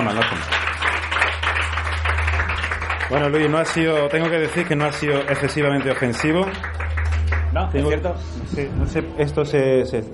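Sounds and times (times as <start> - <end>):
speech: 0.0 - 0.7, 3.1 - 6.8, 7.6 - 10.1
audience applause: 0.0 - 7.7.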